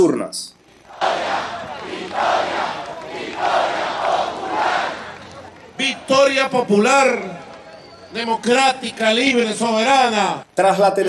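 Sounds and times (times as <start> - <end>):
speech: 0.0 - 0.6, 5.8 - 7.4, 8.1 - 11.0
large crowd chanting a victory slogan: 0.8 - 6.4.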